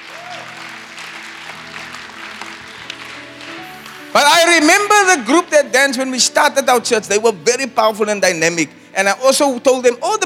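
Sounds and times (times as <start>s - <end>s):
audience clapping for dancers: 0.0s - 5.5s
speech: 4.2s - 10.2s.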